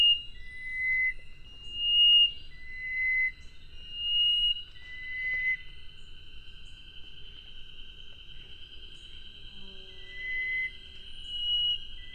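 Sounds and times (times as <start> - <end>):
chestnut-breasted wren Cyphorhinus thoracicus whistled song: 0.0 - 6.0, 9.0 - 12.1.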